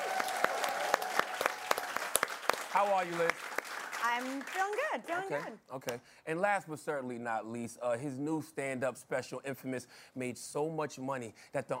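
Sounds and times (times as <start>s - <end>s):
studio audience applauding: 0.0s - 5.6s
speech: 2.8s - 11.7s.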